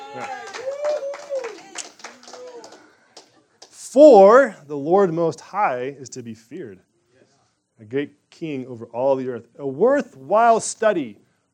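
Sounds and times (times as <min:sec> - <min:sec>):
audience clapping: 0:00.0 - 0:03.8
speech: 0:00.1 - 0:00.5, 0:03.9 - 0:06.9, 0:07.8 - 0:11.5.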